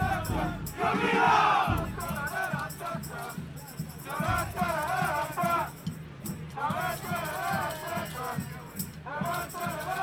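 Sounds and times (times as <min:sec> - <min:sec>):
Birmingham Legion FC fans crowd roar: 0:00.0 - 0:01.9
Birmingham Legion FC fans shouting and chanting: 0:00.0 - 0:05.8, 0:06.5 - 0:10.0.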